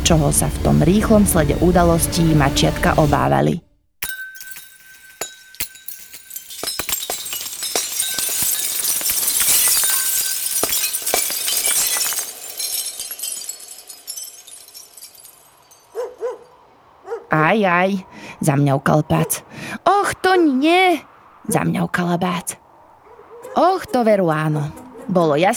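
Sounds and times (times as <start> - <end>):
speech: 0.1 - 3.7, 17.6 - 22.6, 23.6 - 25.5
glass Christmas ornaments breaking on floor: 4.0 - 15.8.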